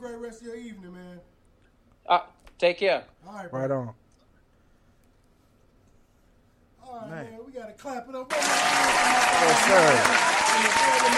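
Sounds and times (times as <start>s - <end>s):
speech: 0.2s - 1.4s, 2.1s - 4.0s, 6.9s - 11.1s
applause: 8.3s - 11.1s.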